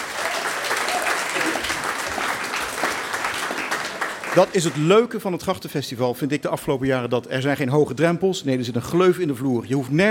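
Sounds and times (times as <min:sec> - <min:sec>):
audience applause: 0:00.0 - 0:05.2
speech: 0:04.4 - 0:10.0.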